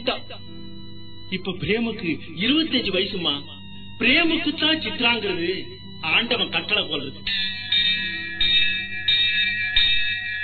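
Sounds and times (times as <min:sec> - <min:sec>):
speech: 0:01.3 - 0:07.5
temple bell ringing: 0:02.8 - 0:10.4.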